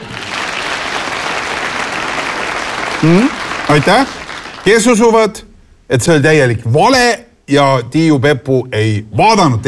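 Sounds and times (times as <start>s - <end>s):
audience applause: 0.0s - 5.0s
speech: 3.0s - 9.6s.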